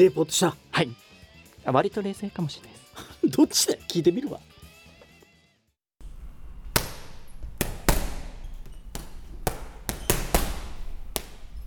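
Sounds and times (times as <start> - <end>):
speech: 0.0 - 1.0, 1.6 - 4.5
punches hitting a sandbag in a fighter's training session: 6.6 - 11.6.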